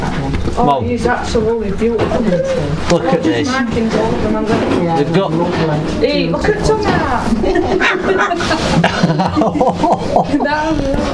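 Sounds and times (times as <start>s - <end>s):
people talking and chuckling: 0.0s - 11.1s
speech: 0.6s - 11.1s
dog barking: 7.8s - 8.5s.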